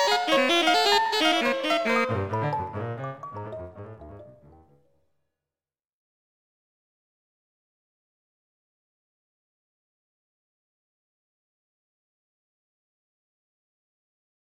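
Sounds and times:
jazzy fibonacci tonescape: 0.0 - 4.7.

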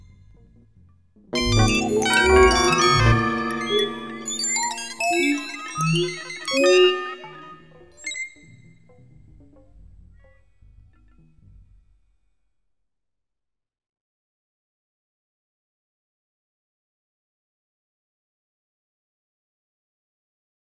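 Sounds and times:
truly noisy thoroughfare: 1.4 - 7.9.

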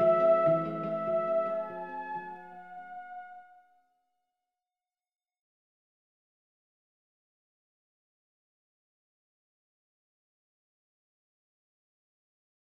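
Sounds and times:
13 limit harmonic series melody: 0.0 - 3.4.

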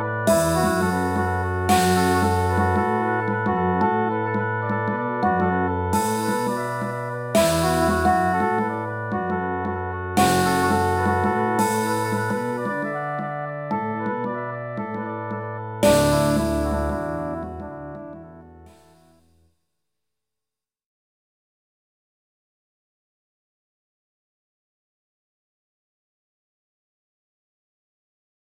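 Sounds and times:
French horn: 0.0 - 18.7
flute: 0.0 - 19.0
never repeating dance rhythm: 0.3 - 15.0, 15.8 - 18.2.

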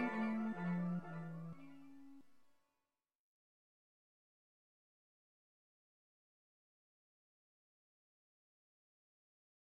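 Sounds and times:
Hawaiian scale played: 0.0 - 2.2.

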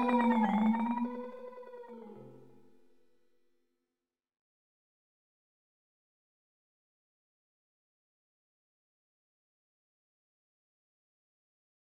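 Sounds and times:
fractal music in twenty-four equal steps to an octave: 0.0 - 2.5.

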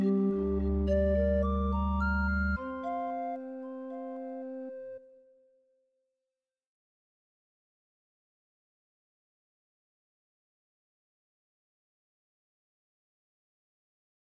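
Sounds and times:
pan flutes in a forest: 0.0 - 5.2.

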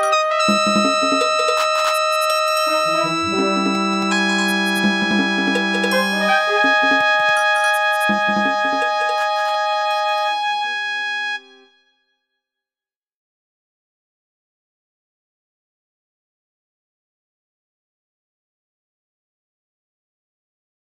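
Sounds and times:
percussion medley: 0.0 - 9.6
brass in fifteen-tone equal temperament: 0.0 - 11.8.

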